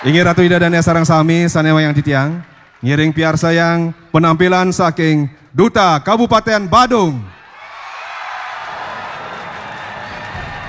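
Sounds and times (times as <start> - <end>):
speech: 0.0 - 7.4
audience voices: 7.5 - 10.6.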